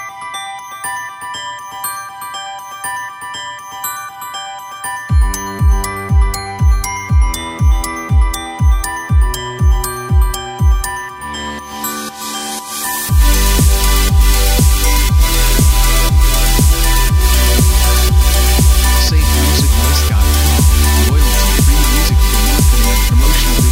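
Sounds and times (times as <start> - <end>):
modern pop background intro: 5.1 - 23.6.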